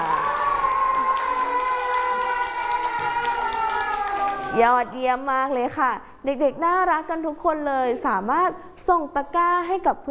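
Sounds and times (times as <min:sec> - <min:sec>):
children clapping: 0:00.0 - 0:04.8
speech: 0:04.6 - 0:10.1.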